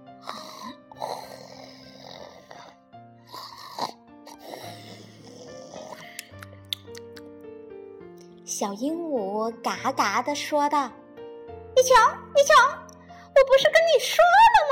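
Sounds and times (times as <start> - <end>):
soft musical backing of sustained tones: 0.0 - 14.7
hippo snoring: 0.3 - 6.0
speech: 8.6 - 11.0, 11.8 - 12.8, 13.4 - 14.7.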